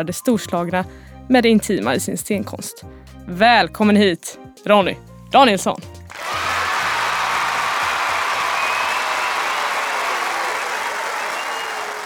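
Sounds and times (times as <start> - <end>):
speech: 0.0 - 6.5
small round of hand clapping: 6.1 - 12.0.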